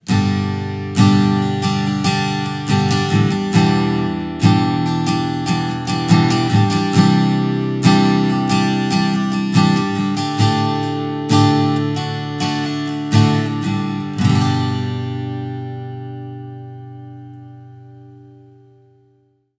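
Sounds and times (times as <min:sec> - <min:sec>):
strings strummed: 0:00.0 - 0:18.7.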